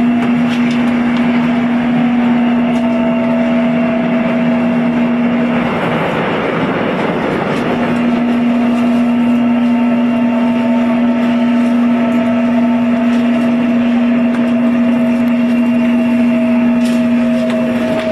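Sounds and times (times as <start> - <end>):
Seoul Subway Line 1 train running: 0.0 - 18.0.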